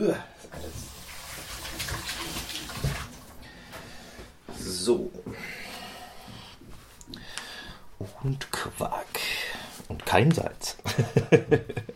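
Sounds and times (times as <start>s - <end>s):
speech: 0.0s - 0.6s, 4.9s - 5.2s, 8.2s - 9.0s, 10.1s - 11.9s
running tap water as hands are washed in a kitchen: 0.5s - 3.4s.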